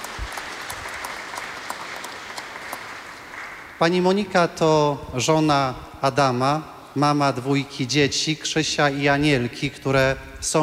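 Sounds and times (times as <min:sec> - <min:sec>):
audience applause: 0:00.0 - 0:03.9
speech: 0:03.8 - 0:10.6.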